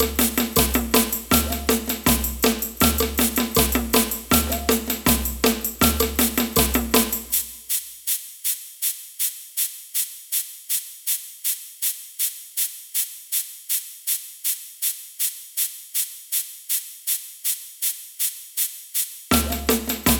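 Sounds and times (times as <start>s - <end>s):
samba band playing: 0.0s - 7.4s, 19.3s - 20.1s
ganza shaker in samba band: 0.0s - 20.1s.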